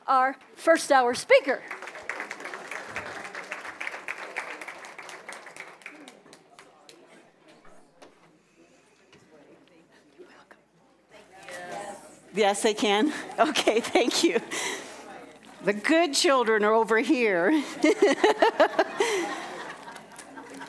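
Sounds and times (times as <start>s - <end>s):
speech: 0.1s - 1.9s, 12.4s - 14.7s, 15.6s - 19.4s
audience applause: 1.7s - 7.0s
laughter: 13.1s - 15.1s, 17.5s - 20.6s.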